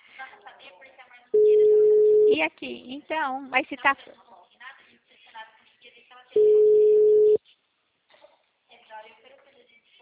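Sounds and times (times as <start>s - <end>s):
telephone call ringing tone: 1.4s - 2.4s, 6.4s - 7.4s
speech: 2.3s - 4.3s.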